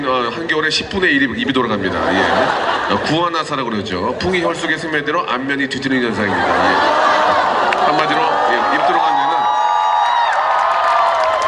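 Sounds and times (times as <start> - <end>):
speech: 0.1 - 7.2
laughter: 1.3 - 5.0, 5.9 - 9.5
scattered voices shouting and whooping: 6.4 - 11.4
crowd clapping: 7.4 - 11.4.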